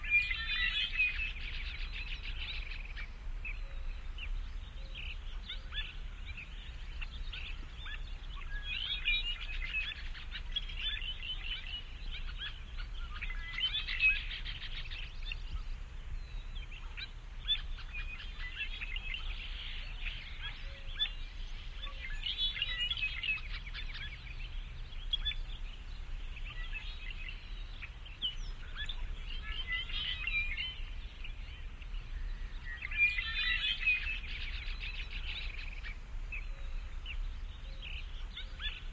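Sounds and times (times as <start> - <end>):
forest birds: 0.0 - 38.9.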